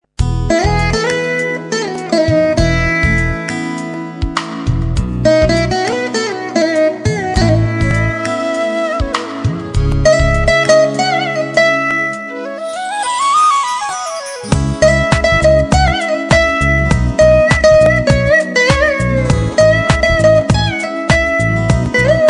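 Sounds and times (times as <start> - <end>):
instrumental music: 0.1 - 22.2.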